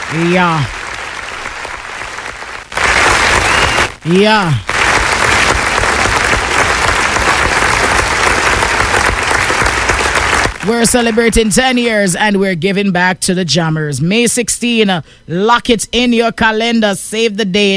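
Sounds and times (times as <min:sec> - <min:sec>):
audience applause: 0:00.0 - 0:11.5
speech: 0:00.1 - 0:00.8, 0:04.0 - 0:04.7, 0:10.6 - 0:17.7.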